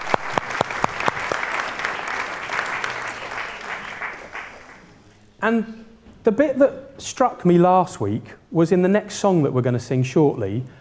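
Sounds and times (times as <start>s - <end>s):
round of applause: 0.0s - 5.0s
speech: 5.4s - 10.8s.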